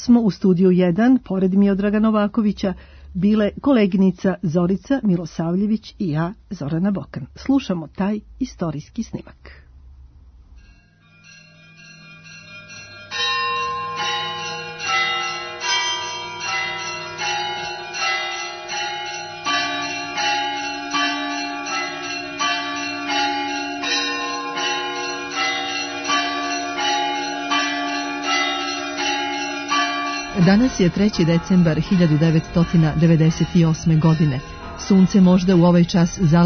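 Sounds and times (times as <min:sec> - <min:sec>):
speech: 0:00.0 - 0:09.6, 0:30.4 - 0:36.4
church bells ringing at Hilandar Monastery on Mount Athos: 0:10.6 - 0:36.4.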